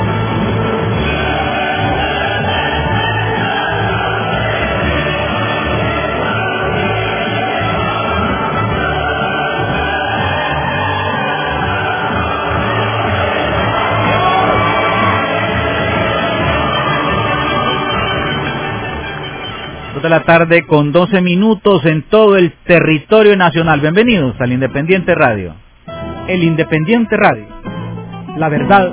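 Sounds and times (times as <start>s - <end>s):
applause and cheering sound effect: 0.2s - 20.1s
speech: 20.1s - 25.6s, 26.3s - 27.5s, 28.4s - 28.9s.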